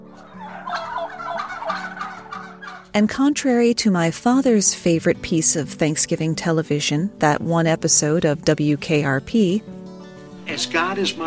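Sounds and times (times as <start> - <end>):
wild turkey gobbling: 0.0 - 2.9
speech: 3.0 - 9.8, 10.5 - 11.2.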